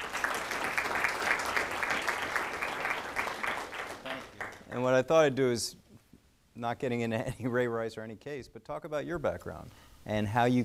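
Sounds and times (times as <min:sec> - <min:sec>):
applause welcoming a judge as guest at a conversation event: 0:00.0 - 0:04.8
speech: 0:04.7 - 0:05.8, 0:06.6 - 0:10.6.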